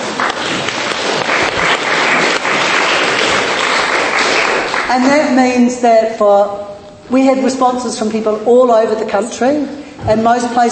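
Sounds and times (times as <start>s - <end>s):
audience clapping: 0.0s - 5.4s
speech: 4.9s - 10.7s.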